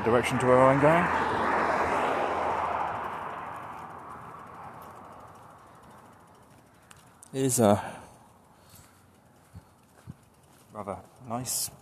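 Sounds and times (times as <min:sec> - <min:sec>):
speech: 0:00.0 - 0:01.4, 0:07.3 - 0:08.0, 0:10.8 - 0:11.7
ticking of a bicycle being pushed: 0:02.3 - 0:11.7.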